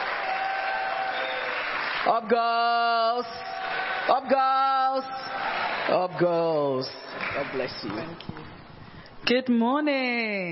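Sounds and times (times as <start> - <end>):
audience applauding: 0.0 - 8.1
speech: 2.0 - 8.6, 9.3 - 10.5.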